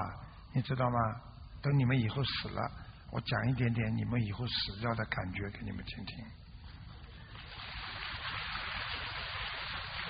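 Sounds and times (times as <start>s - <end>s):
speech: 0.0s - 6.4s
audience applause: 7.4s - 10.0s.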